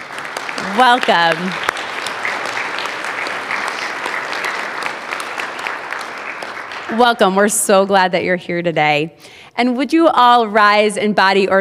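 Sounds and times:
crowd clapping: 0.0 - 7.5
speech: 0.6 - 1.7, 6.9 - 11.6.

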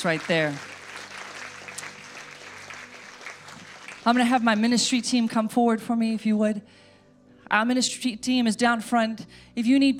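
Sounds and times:
speech: 0.0 - 0.7, 4.0 - 6.8, 7.5 - 9.9
audience clapping: 0.0 - 5.1.

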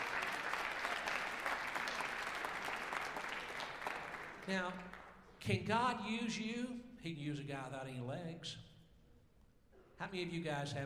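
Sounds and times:
audience clapping: 0.0 - 5.3
speech: 4.5 - 8.7, 10.0 - 10.8.

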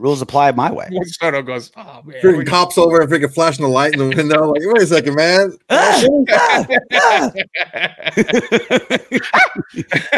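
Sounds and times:
speech: 0.0 - 10.1
laughter: 3.5 - 10.1
voice imitating cartoon scream with tongue out: 5.7 - 7.4.

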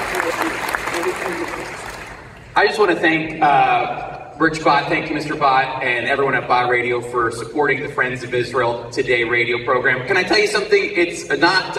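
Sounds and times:
audience applause: 0.0 - 2.3
speech: 2.6 - 11.7.

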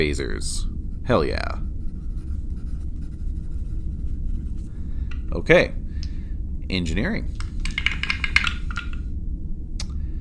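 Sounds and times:
speech: 0.0 - 1.6, 5.3 - 5.8, 6.7 - 7.4
low steady hum: 0.0 - 10.1
dice rolling on a table: 7.4 - 9.0.

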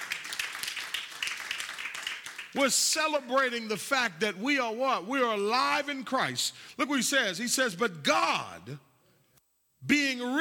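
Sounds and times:
audience hand clapping: 0.0 - 2.6
speech: 2.5 - 8.9, 9.8 - 10.3.

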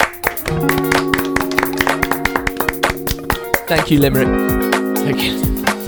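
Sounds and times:
applause: 0.0 - 4.1
speech: 3.7 - 5.6.

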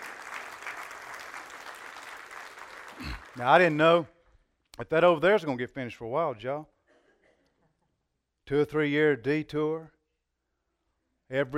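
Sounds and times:
audience clapping: 0.0 - 4.0
speech: 3.4 - 4.1, 4.8 - 6.7, 8.5 - 10.0, 11.3 - 11.5.

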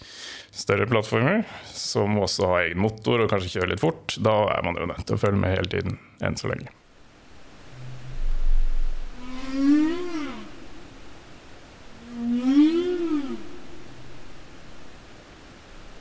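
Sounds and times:
low hiss: 0.0 - 15.9
speech: 0.6 - 6.8
humpback whale song from seafloor microphones: 7.5 - 14.6.

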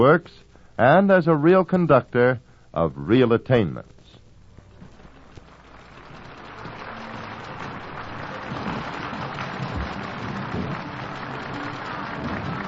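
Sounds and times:
speech: 0.0 - 4.0
concert audience applause: 4.8 - 12.6.

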